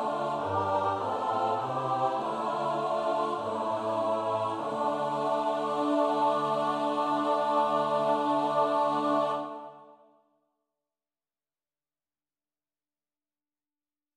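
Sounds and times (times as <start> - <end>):
soprano alto tenor bass choir singing: 0.0 - 10.0.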